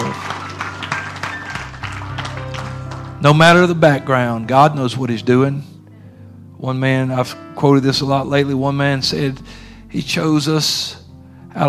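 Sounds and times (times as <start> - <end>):
audience clapping: 0.0 - 3.8
speech: 3.2 - 5.7, 6.6 - 11.0.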